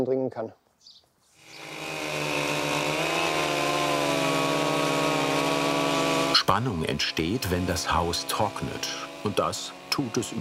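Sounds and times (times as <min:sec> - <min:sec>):
speech: 0:00.0 - 0:01.0, 0:06.5 - 0:10.3
chainsaw cutting relief cut into log: 0:01.4 - 0:10.3.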